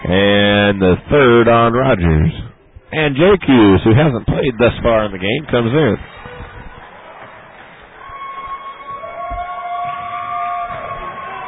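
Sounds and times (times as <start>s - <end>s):
speech: 0.1s - 6.1s
scattered clapping: 4.3s - 11.4s
crowd cheering: 5.3s - 11.4s.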